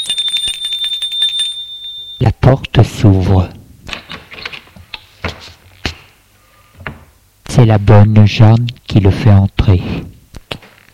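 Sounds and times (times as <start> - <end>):
doorbell ringing: 0.0 - 2.4
speech: 2.2 - 3.6, 7.6 - 10.2.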